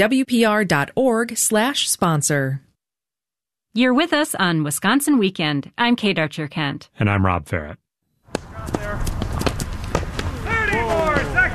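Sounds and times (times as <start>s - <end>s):
speech: 0.0s - 2.7s, 3.7s - 8.9s
hurling players' feet thudding during a drill: 8.3s - 11.5s
hurling players calling: 10.2s - 11.5s.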